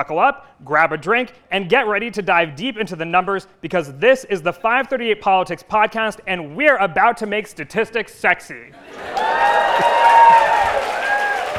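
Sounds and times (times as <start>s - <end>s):
speech: 0.0s - 9.9s
live audience clapping: 8.8s - 11.5s.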